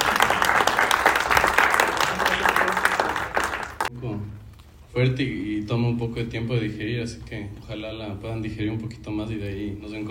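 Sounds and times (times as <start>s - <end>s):
audience applause: 0.0s - 3.9s
speech: 5.0s - 10.0s.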